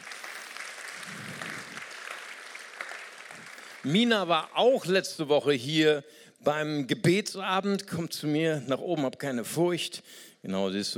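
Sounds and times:
audience applause: 0:00.0 - 0:04.5
speech: 0:03.8 - 0:10.9.

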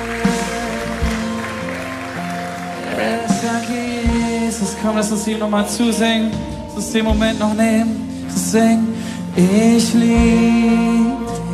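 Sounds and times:
audience clapping: 0:00.0 - 0:04.5
sustained keyboard chords: 0:00.0 - 0:11.5
speech: 0:04.6 - 0:11.2.

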